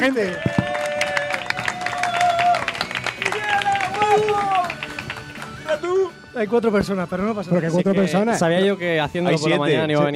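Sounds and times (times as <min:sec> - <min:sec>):
speech: 0:00.0 - 0:00.5, 0:05.7 - 0:10.1
applause: 0:00.0 - 0:05.9.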